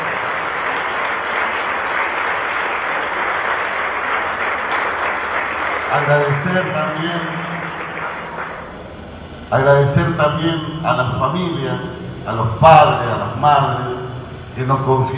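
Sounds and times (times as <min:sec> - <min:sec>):
crowd clapping loudly: 0:00.0 - 0:09.0
speech: 0:06.0 - 0:07.5, 0:09.5 - 0:13.9, 0:14.6 - 0:15.1.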